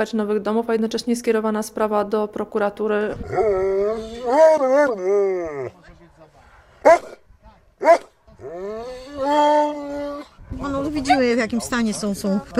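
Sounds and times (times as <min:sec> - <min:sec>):
speech: 0:00.0 - 0:05.9, 0:07.8 - 0:09.5, 0:10.6 - 0:12.5
dogs whining and howling: 0:03.1 - 0:05.8, 0:07.8 - 0:10.5
dog barking: 0:06.8 - 0:07.2, 0:07.8 - 0:08.2.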